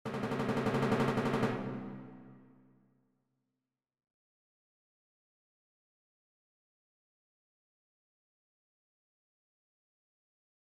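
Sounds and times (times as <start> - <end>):
timpani: 0.1 - 2.7.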